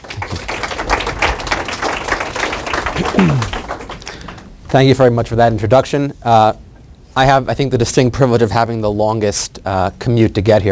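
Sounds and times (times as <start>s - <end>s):
audience applause welcoming a speaker: 0.0s - 4.6s
speech: 3.2s - 3.6s, 4.7s - 6.6s, 7.2s - 10.6s.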